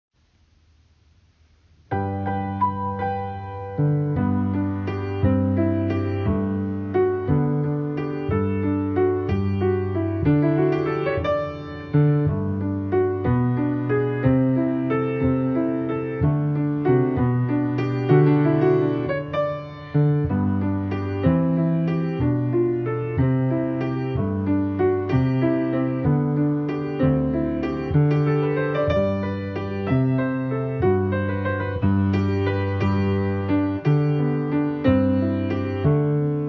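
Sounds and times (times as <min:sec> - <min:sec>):
piano: 0:00.2 - 0:36.4.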